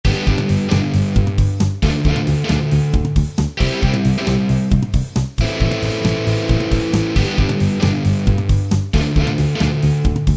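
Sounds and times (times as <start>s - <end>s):
guitar: 0.0s - 10.3s.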